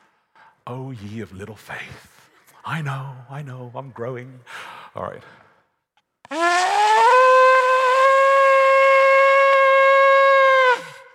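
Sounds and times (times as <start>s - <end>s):
speech: 0.7s - 5.4s
shofar ram's horn blast: 6.3s - 11.1s.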